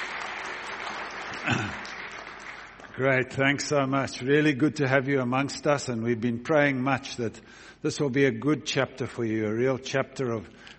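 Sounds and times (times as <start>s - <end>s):
church congregation applauding to welcome newcomers: 0.0s - 3.9s
speech: 3.0s - 10.7s.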